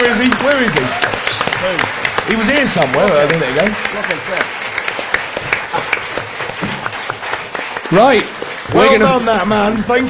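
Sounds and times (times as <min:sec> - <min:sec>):
audience round of applause: 0:00.0 - 0:10.0
speech: 0:01.6 - 0:04.6, 0:07.9 - 0:10.0.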